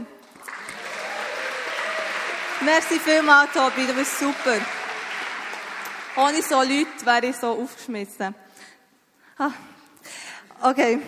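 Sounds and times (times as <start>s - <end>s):
audience applause: 0.2s - 7.4s
speech: 2.6s - 4.8s, 6.2s - 8.4s, 9.4s - 11.0s.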